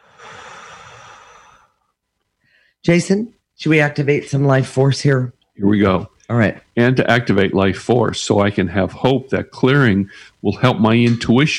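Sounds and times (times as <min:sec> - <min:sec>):
deep breath blown out in a guided breathing exercise: 0:00.0 - 0:01.8
speech: 0:02.8 - 0:11.5.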